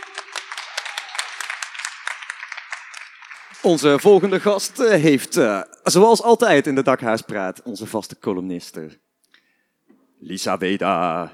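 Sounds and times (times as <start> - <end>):
audience applause: 0.0 - 5.2
speech: 3.5 - 9.0, 10.2 - 11.3.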